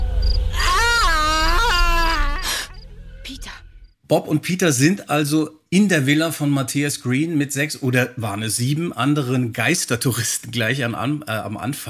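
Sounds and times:
creepy drawn-out scream: 0.0s - 3.8s
speech: 4.1s - 11.8s.

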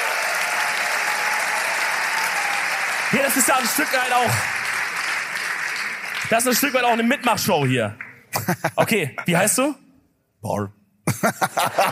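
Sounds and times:
audience applause at a live audience-participation show: 0.0s - 9.0s
speech: 3.1s - 4.6s, 6.3s - 9.8s, 10.4s - 11.9s
laughter: 8.3s - 9.3s, 11.1s - 11.9s.

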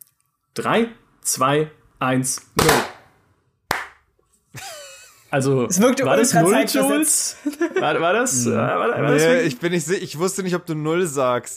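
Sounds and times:
speech: 0.6s - 3.0s, 5.3s - 11.5s
hand claps: 3.7s - 4.1s
laughter: 4.6s - 5.3s, 6.2s - 9.7s.

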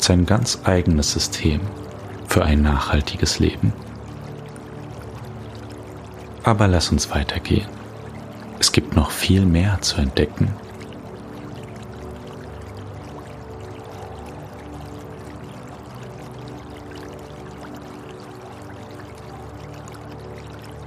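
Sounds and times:
small brook babbling: 0.0s - 20.8s
speech: 0.1s - 3.8s, 6.4s - 7.8s, 8.7s - 10.6s.

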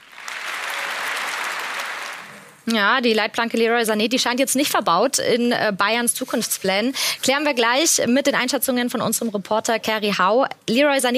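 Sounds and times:
audience applause for a football trio: 0.0s - 2.6s
speech: 2.7s - 11.1s.

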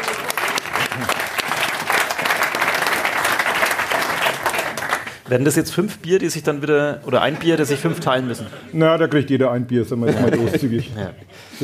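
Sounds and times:
live audience applause: 0.0s - 5.2s
speech: 5.3s - 11.6s
laughter: 7.2s - 8.8s, 10.0s - 11.6s.

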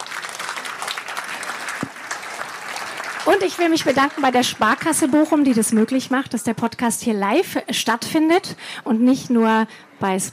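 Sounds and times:
audience applause: 0.0s - 6.2s
speech: 3.3s - 10.3s.

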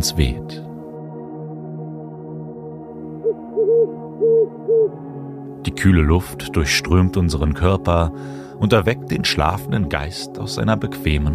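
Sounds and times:
speech: 0.0s - 0.5s, 3.6s - 11.3s
distant eagle owl hooting: 3.2s - 5.0s.

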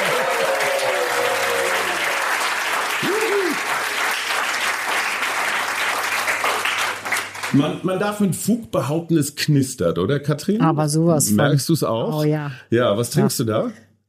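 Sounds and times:
crowd cheering and whooping: 0.0s - 2.3s, 2.9s - 4.0s
live crowd applauding: 0.0s - 7.8s
speech: 7.6s - 13.9s.

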